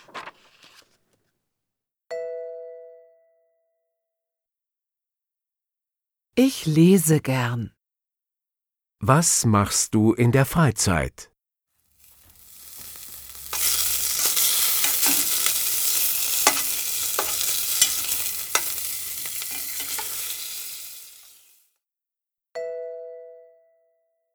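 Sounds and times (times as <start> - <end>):
speech: 6.4 - 7.8, 9.0 - 11.3
stirring clicks: 12.0 - 21.5
food frying in a pan: 12.0 - 21.6.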